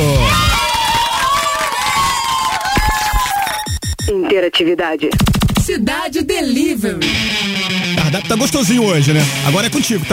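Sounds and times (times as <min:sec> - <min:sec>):
applause and cheering: 0:00.0 - 0:03.7
speech: 0:04.4 - 0:10.1.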